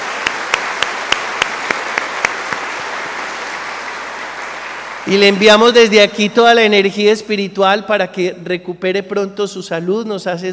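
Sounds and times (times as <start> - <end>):
loud applause: 0.0 - 5.9
speech: 5.1 - 10.5.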